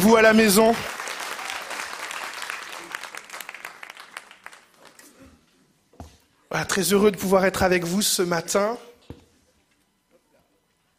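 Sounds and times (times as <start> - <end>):
speech: 0.0 - 1.0, 6.5 - 8.9
audience applause: 0.0 - 5.1.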